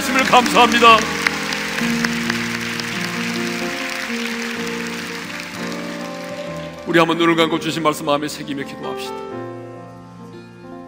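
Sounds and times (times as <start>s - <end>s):
audience applause: 0.0s - 7.3s
sustained keyboard or organ chords: 0.0s - 10.8s
speech: 0.3s - 1.2s, 1.8s - 2.1s, 6.9s - 9.4s.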